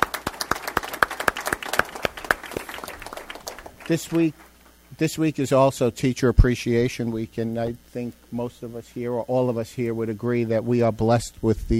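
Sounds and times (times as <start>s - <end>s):
audience applause for nurses: 0.0s - 4.5s
speech: 3.9s - 11.7s.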